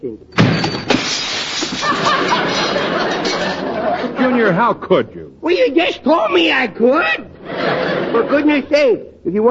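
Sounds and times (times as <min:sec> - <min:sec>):
speech: 0:00.0 - 0:00.8, 0:04.4 - 0:07.3, 0:08.1 - 0:09.4
glass pane shattering: 0:00.3 - 0:03.6
door slamming: 0:00.4 - 0:02.4
laughter: 0:01.7 - 0:04.8, 0:07.4 - 0:08.8.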